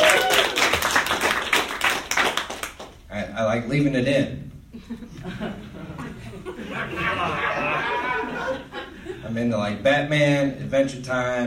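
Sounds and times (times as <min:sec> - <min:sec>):
crowd clapping: 0:00.0 - 0:03.0
speech: 0:03.6 - 0:11.4
laughter: 0:04.7 - 0:09.4.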